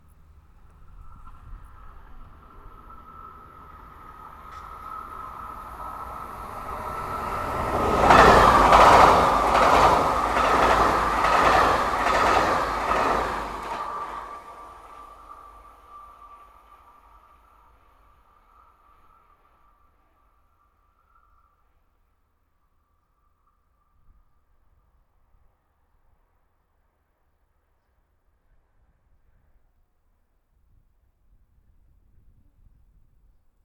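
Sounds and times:
TGV high-speed train passing: 0.0s - 21.2s.

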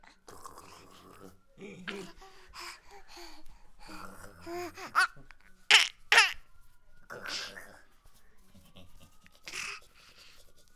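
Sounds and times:
laughing: 0.6s - 3.0s, 3.8s - 6.3s, 8.4s - 9.8s.

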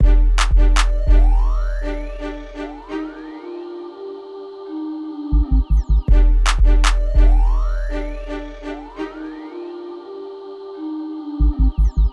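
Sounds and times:
short trap beat loop: 0.0s - 2.6s, 5.3s - 9.0s, 11.4s - 12.1s.

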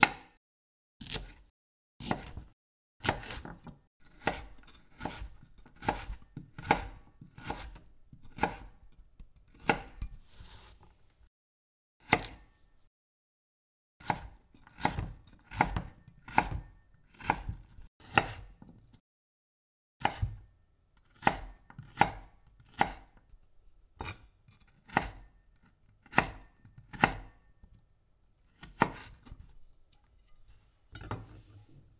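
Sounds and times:
carrot being cut: 1.0s - 8.8s, 9.4s - 10.9s, 12.0s - 12.5s, 14.0s - 18.8s, 20.0s - 20.4s, 21.0s - 23.2s, 24.0s - 27.4s, 28.4s - 30.0s.

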